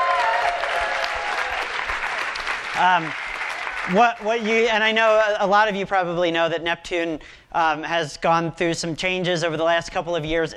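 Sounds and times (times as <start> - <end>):
audience applause: 0.0 - 4.4
speech: 2.8 - 3.2, 3.9 - 10.5.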